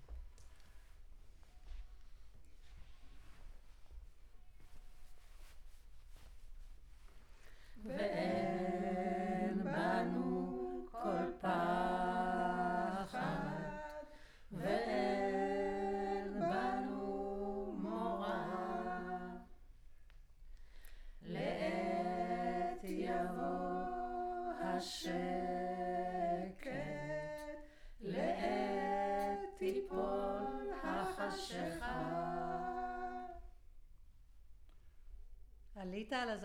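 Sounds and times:
choir recorded with center U47 microphone: 7.8s - 19.6s, 21.2s - 33.6s.

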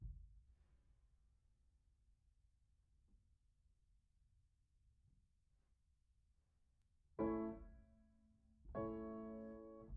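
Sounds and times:
piano: 7.2s - 9.9s.

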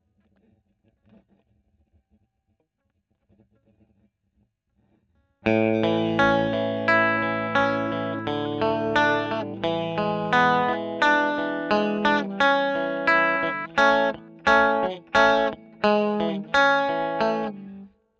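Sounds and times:
electric guitar recorded with Royer microphone: 5.5s - 17.9s.

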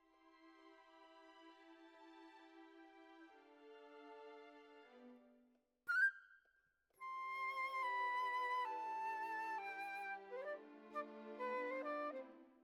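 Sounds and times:
flute: 5.9s - 12.6s.

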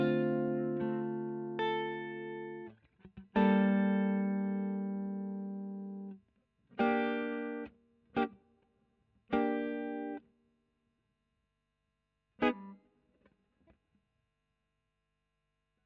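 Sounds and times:
electric guitar: 0.0s - 6.2s, 6.8s - 8.4s, 9.3s - 10.2s.

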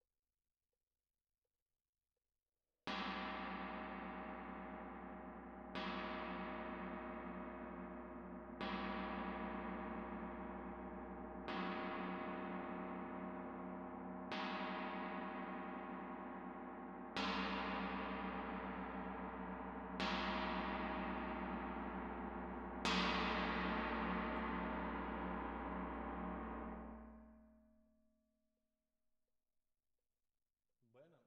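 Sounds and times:
close tam-tam: 2.9s - 27.7s.

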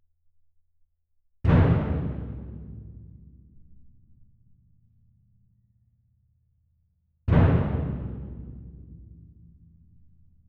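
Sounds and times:
percussion: 1.4s - 4.8s, 7.3s - 10.4s.

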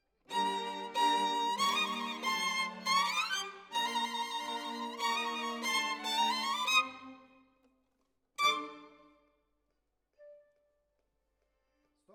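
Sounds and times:
violin solo: 0.3s - 7.4s, 8.4s - 9.2s.

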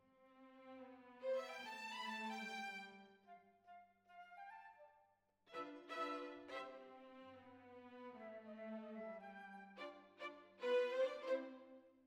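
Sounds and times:
violins: 0.3s - 3.2s, 5.5s - 11.8s.

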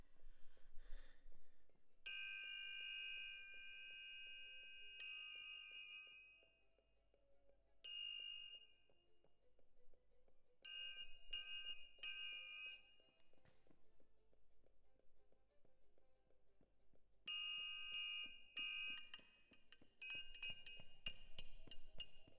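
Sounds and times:
close percussion: 2.1s - 4.1s, 4.8s - 6.6s, 7.8s - 9.8s, 10.6s - 14.4s, 17.3s - 22.3s.

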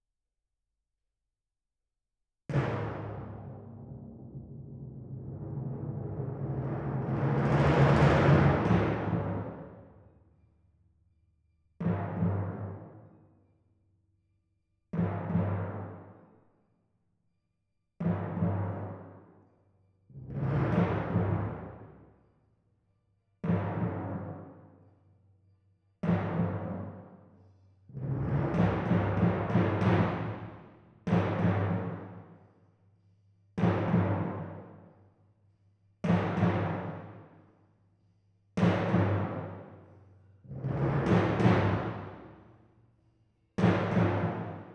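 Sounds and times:
timpani: 2.5s - 10.1s, 11.8s - 13.2s, 18.0s - 19.4s, 20.1s - 22.1s, 23.4s - 24.8s, 26.0s - 27.3s, 27.9s - 32.4s, 33.6s - 34.9s, 36.0s - 37.4s, 38.6s - 42.6s, 43.6s - 44.7s.

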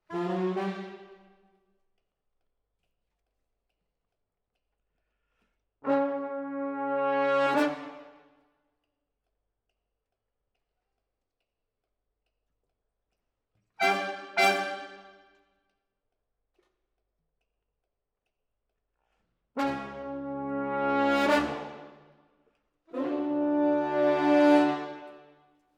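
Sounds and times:
horns playing: 0.1s - 1.1s, 5.8s - 8.2s, 13.8s - 15.2s, 19.6s - 22.1s, 22.9s - 25.3s.

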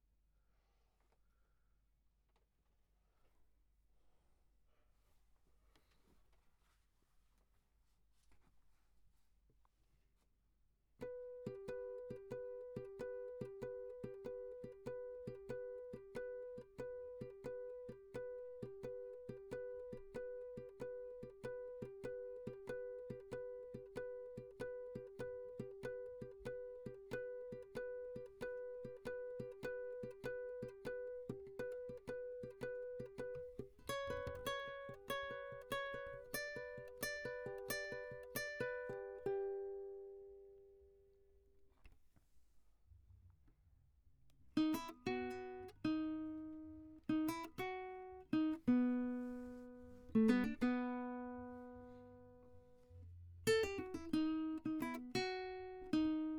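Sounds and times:
classical guitar: 11.0s - 41.1s, 44.5s - 56.3s.

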